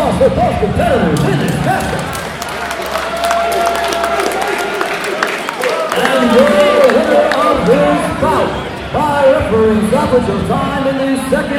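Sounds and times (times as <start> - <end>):
speech: 0.2 - 2.2, 8.2 - 11.5
crowd applause and cheering for boxers at a ballroom boxing match: 1.1 - 9.9.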